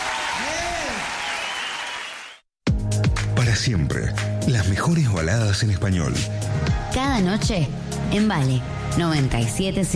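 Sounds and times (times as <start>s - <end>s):
loud applause from a large audience: 0.0s - 2.4s
whistle or cheer: 0.0s - 2.4s
speech: 3.6s - 9.9s.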